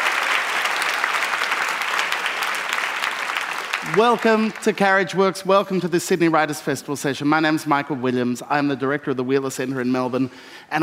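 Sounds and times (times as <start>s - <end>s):
audience applause: 0.0s - 5.0s
speech: 3.9s - 10.8s.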